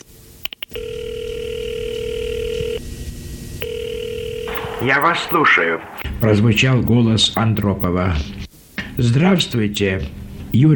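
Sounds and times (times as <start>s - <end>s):
direct line telephone number being dialed: 0.7s - 2.8s, 3.6s - 4.6s
speech: 4.8s - 8.4s, 9.0s - 10.7s.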